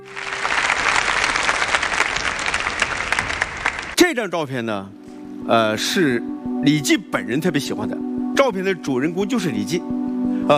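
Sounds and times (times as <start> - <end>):
audience applause: 0.0 - 4.0
speech: 4.1 - 10.5.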